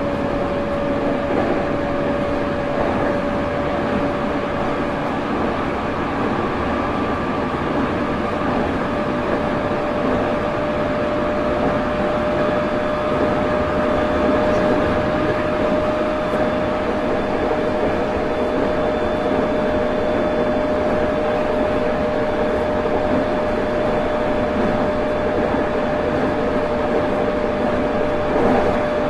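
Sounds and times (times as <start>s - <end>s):
E217 series Yokosuka Sobu Rapid train: 0.0s - 29.0s.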